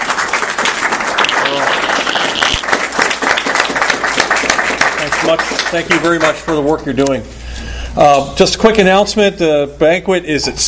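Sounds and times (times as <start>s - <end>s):
audience applause: 0.0s - 6.6s
speech: 5.2s - 7.4s, 8.0s - 10.6s.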